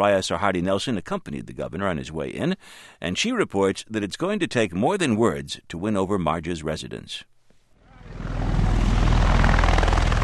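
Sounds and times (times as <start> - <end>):
speech: 0.0 - 7.3
Marine Osprey aircraft rotor and engine roar landing on the edge of Marja: 7.9 - 10.2.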